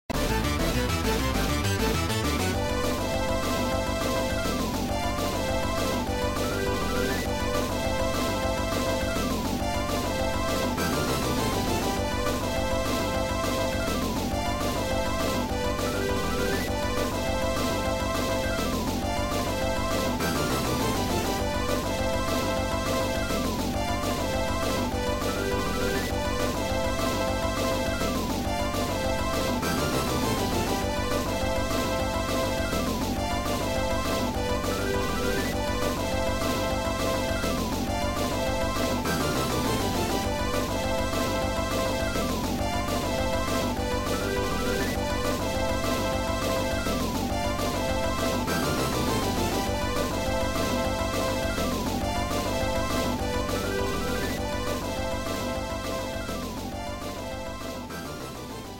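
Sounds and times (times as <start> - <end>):
theme music: 0.1 - 58.7.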